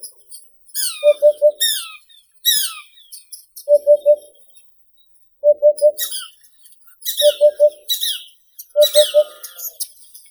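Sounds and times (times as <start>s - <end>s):
hoopoe Upupa epops calling: 0.8s - 3.2s, 5.9s - 6.4s, 7.1s - 9.8s.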